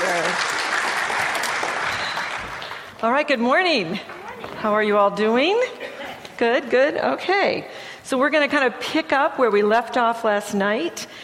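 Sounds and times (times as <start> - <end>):
audience applause welcoming a speaker to a morning church gathering: 0.0 - 3.0
speech: 3.0 - 5.7, 6.4 - 11.1.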